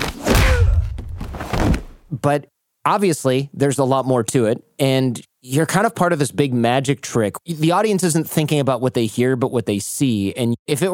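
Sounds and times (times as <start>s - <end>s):
punch sound effect: 0.0s - 2.1s
speech: 2.2s - 10.9s.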